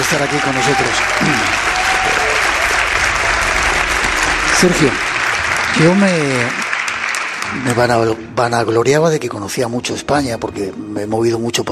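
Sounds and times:
audience applause for a tour guide: 0.0s - 8.3s
speech: 0.1s - 2.2s, 4.6s - 5.1s, 5.8s - 6.6s, 7.5s - 11.6s.

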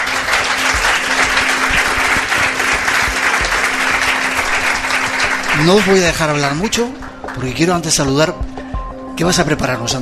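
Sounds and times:
audience applause: 0.0s - 7.6s
speech: 5.6s - 8.5s, 9.2s - 10.0s.

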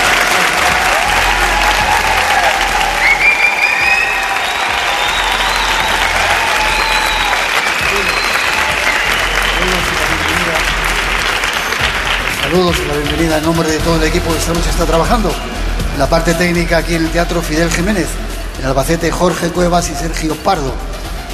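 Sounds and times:
scattered cheers: 0.0s - 12.5s
audience applause in a theatre: 0.0s - 13.8s
speech: 12.6s - 20.9s.

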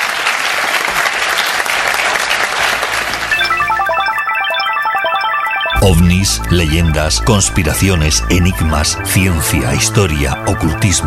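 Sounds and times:
crowd applause: 0.0s - 4.9s
bright tinkling electronic melody: 3.0s - 11.0s
speech: 5.8s - 11.0s.

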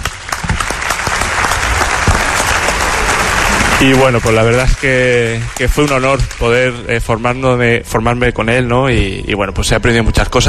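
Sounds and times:
audience applause: 0.0s - 7.1s
speech: 3.8s - 10.4s.

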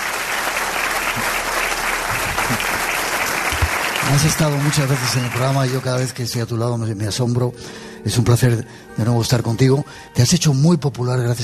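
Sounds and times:
audience applause: 0.0s - 6.4s
speech: 4.1s - 11.4s.

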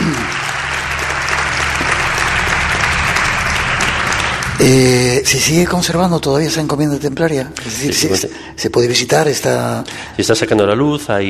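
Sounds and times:
audience applause: 0.0s - 6.8s
low hum: 0.0s - 8.2s
speech: 4.6s - 11.2s.

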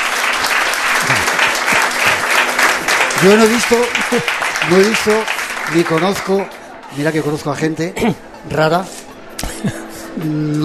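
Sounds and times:
applause: 0.0s - 6.8s
speech: 3.2s - 9.0s, 9.6s - 10.6s.

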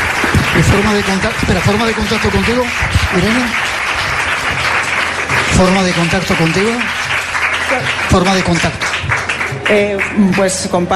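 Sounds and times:
audience applause: 0.0s - 10.6s
speech: 0.7s - 3.7s, 5.6s - 7.0s, 7.7s - 10.9s.

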